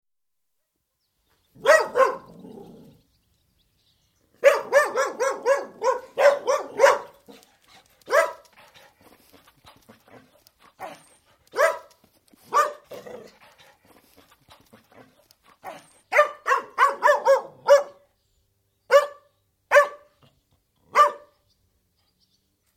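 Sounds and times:
collie-Airedale cross dogs barking indoors: 1.6s - 2.5s, 4.4s - 7.4s, 8.1s - 8.5s, 10.8s - 13.3s, 15.6s - 18.0s, 18.9s - 20.2s, 20.9s - 21.4s.

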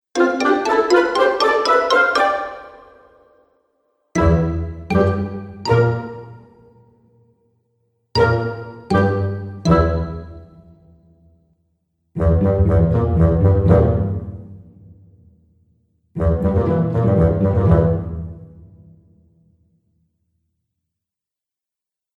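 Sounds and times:
fun cartoon music: 0.2s - 3.4s, 4.2s - 6.6s, 8.2s - 10.7s, 12.2s - 14.0s, 16.2s - 18.2s.

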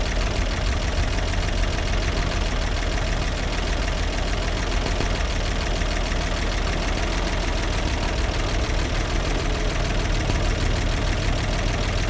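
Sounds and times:
1942 Bedford WS classic commercial truck engine idling: 0.0s - 12.0s.

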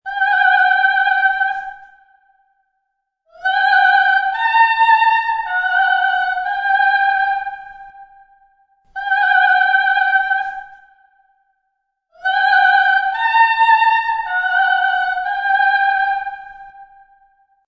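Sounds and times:
woman singing operatically: 0.0s - 1.8s, 3.3s - 7.9s, 9.0s - 10.8s, 12.2s - 16.8s.

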